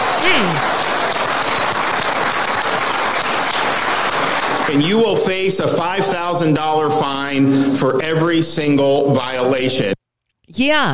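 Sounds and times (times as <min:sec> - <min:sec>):
audience clapping: 0:00.0 - 0:06.5
speech: 0:04.7 - 0:10.9.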